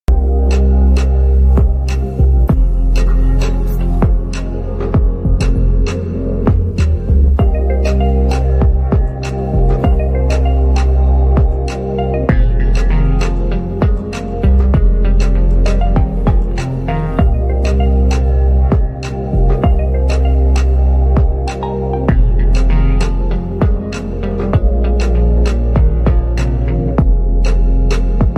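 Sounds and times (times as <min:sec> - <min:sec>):
background music: 0:00.1 - 0:28.3.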